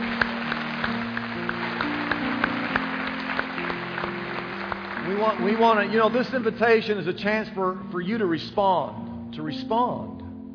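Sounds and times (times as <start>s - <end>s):
audience clapping: 0.0s - 6.8s
speech: 5.2s - 10.1s.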